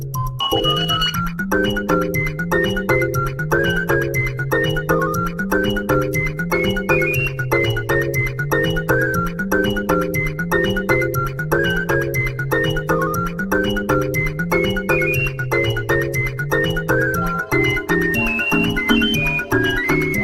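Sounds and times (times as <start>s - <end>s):
music made only from Wrigley's calls: 0.2s - 20.2s.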